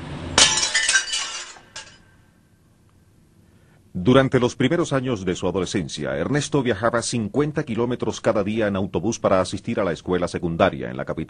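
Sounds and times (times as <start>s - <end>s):
street light glass shattering: 0.4s - 2.0s
speech: 3.9s - 11.2s.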